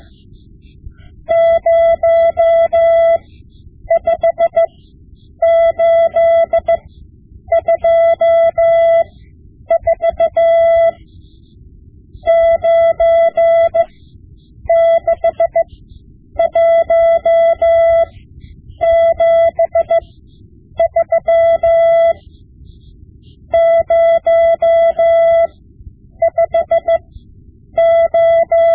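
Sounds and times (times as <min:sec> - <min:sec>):
Morse code lessons: 0:01.2 - 0:03.3, 0:03.9 - 0:04.8, 0:05.4 - 0:06.9, 0:07.5 - 0:11.3, 0:12.2 - 0:14.0, 0:14.7 - 0:20.2, 0:20.8 - 0:22.4, 0:23.2 - 0:25.6, 0:26.2 - 0:28.7.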